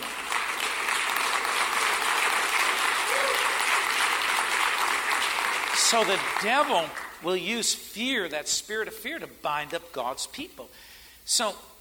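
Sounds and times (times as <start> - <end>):
hand claps: 0.0 - 7.2
speech: 5.9 - 11.7.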